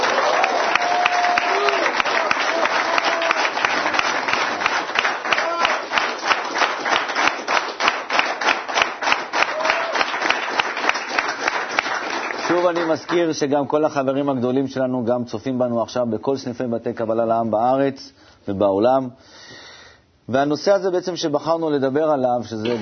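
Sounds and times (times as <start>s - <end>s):
studio audience clapping: 0.0s - 13.5s
speech: 12.9s - 19.4s, 20.3s - 22.7s.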